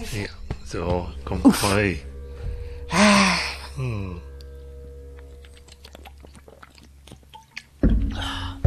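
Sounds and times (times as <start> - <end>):
speech: 0.1 - 2.1, 2.9 - 4.3
person drinking and swallowing: 5.2 - 8.4.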